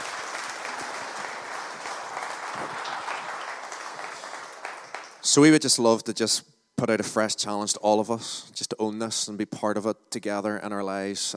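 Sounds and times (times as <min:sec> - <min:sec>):
audience round of applause: 0:00.0 - 0:05.3
speech: 0:05.3 - 0:11.3.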